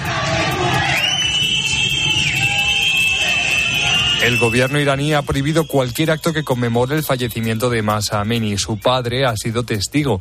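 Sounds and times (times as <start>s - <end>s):
street crowd shouting during protests in Iran: 0.0s - 5.4s
high-pitched whistle: 0.6s - 7.6s
speech: 4.2s - 10.1s.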